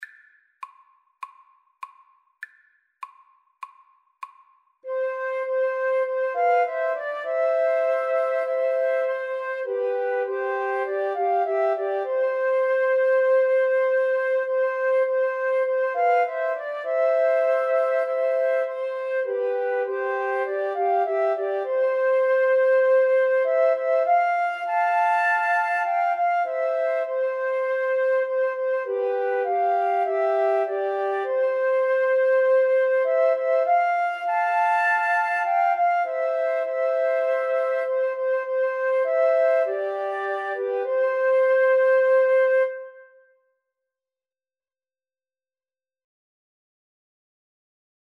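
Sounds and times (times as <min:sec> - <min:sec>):
flute trio playing: 0:04.9 - 0:43.1.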